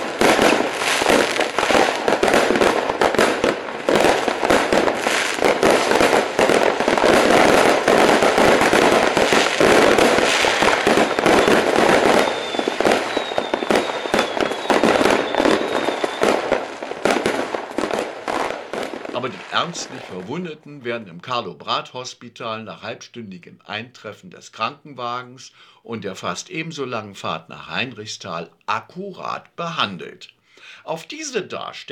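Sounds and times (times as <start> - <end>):
high whistling rockets streaking up: 0.0 - 20.2
firecrackers and fireworks bursting: 0.0 - 30.2
speech: 19.7 - 31.9.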